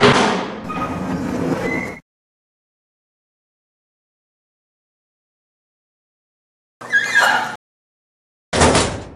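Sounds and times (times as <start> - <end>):
bar door: 0.0 - 1.2, 6.8 - 7.6, 8.6 - 9.1.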